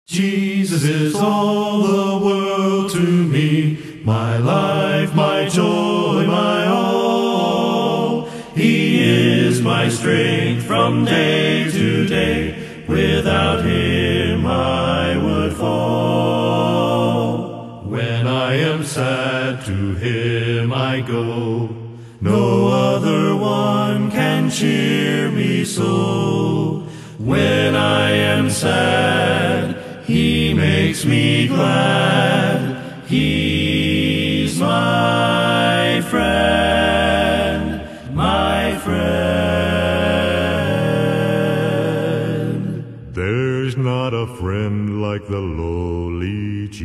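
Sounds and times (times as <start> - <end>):
a cappella singing: 0.0 - 46.8.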